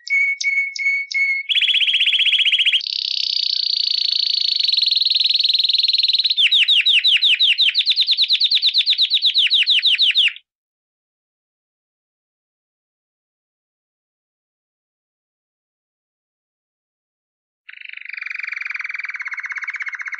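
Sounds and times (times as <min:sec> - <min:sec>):
canary singing: 0:00.0 - 0:10.4, 0:17.7 - 0:20.1.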